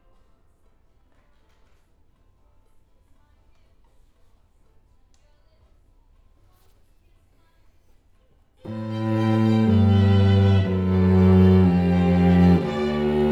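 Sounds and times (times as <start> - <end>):
cello: 8.7 - 13.2.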